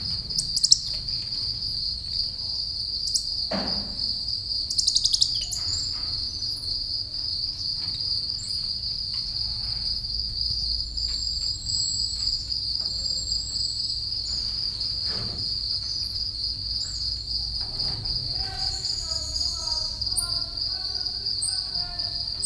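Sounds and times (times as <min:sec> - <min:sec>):
house crickets chirping loudly: 0:00.0 - 0:22.4
golden-handed tamarin in a zoo: 0:16.9 - 0:22.4.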